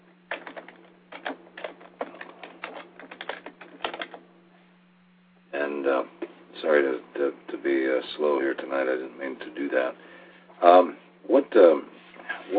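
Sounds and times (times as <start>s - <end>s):
low electrical hum: 0.0s - 12.5s
typing on a computer keyboard: 0.3s - 4.2s
speech: 5.7s - 11.9s.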